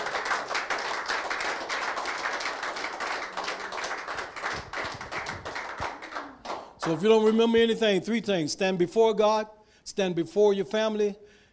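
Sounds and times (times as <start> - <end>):
audience clapping: 0.0 - 7.1
speech: 6.8 - 11.2.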